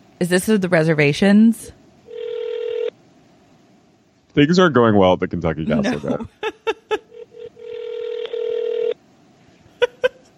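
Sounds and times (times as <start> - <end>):
speech: 0.2 - 1.8, 4.4 - 6.6
long telephone ringing tone calling the Kentucky Castle: 2.1 - 2.9, 7.2 - 9.0
laughter: 5.7 - 7.2, 9.8 - 10.3.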